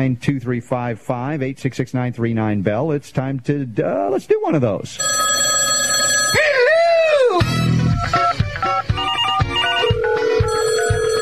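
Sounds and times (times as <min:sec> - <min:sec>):
speech: 0:00.0 - 0:05.4
electronic phone ringtone: 0:05.0 - 0:06.7, 0:08.0 - 0:11.1.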